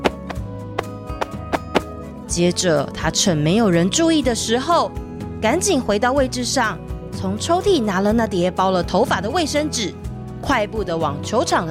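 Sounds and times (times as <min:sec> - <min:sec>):
chalkboard eraser being beaten clean: 0:00.0 - 0:01.9
speech: 0:02.3 - 0:11.6.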